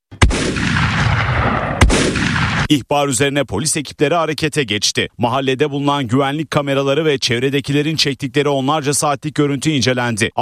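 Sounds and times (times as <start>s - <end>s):
gunfire from a pump-action shotgun and pistols fired into the air at a wedding celebration in Ankara: 0.1s - 2.7s
speech: 2.7s - 10.3s.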